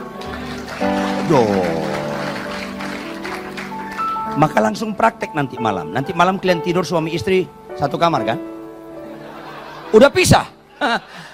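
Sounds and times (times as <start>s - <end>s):
crowd clapping: 0.0s - 4.6s
laughter: 0.5s - 3.0s, 9.1s - 11.3s
speech: 1.3s - 1.8s, 4.4s - 8.5s, 9.9s - 11.3s.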